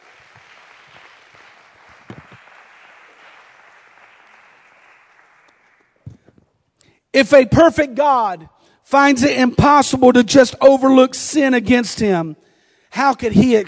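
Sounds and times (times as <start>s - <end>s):
crowd clapping: 0.0s - 6.2s, 13.2s - 13.6s
speech: 7.1s - 13.6s.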